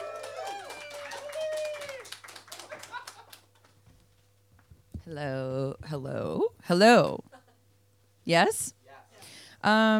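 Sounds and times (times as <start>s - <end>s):
audience applause: 0.0s - 3.8s
speech: 5.1s - 7.2s, 8.3s - 8.8s, 9.6s - 9.9s.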